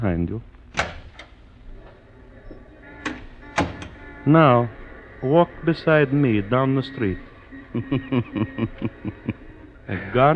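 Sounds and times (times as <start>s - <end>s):
speech: 0.0s - 0.6s, 4.2s - 10.3s
low steady hum: 0.0s - 10.3s
door opening: 0.6s - 7.7s
latch knocks: 0.7s - 4.0s
laughter: 4.3s - 10.3s.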